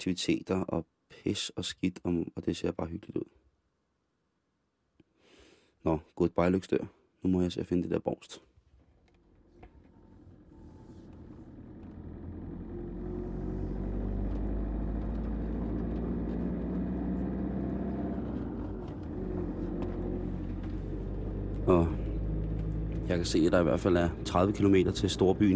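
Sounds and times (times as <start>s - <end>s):
speech: 0.0s - 3.4s, 5.8s - 8.5s, 23.2s - 25.5s
car engine rumble driving through an old harbour district: 8.8s - 25.5s
road noise on a small road: 9.0s - 25.5s.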